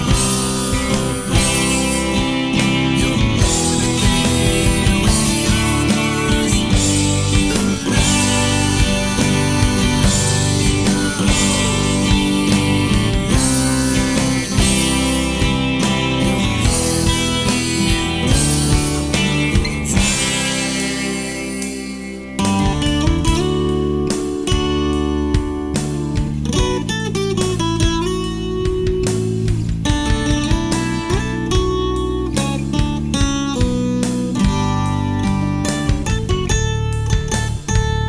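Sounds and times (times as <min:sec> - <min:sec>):
karaoke ambience: 0:00.0 - 0:38.0.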